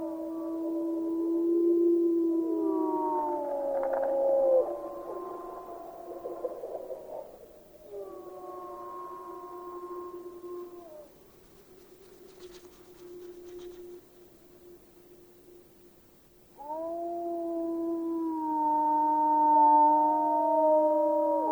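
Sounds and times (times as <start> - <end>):
wolves howling in chorus: 0.0 - 11.1, 16.6 - 21.5.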